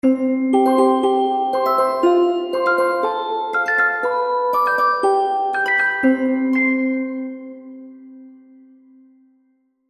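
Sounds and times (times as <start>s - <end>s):
happy baby game music: 0.5s - 7.3s.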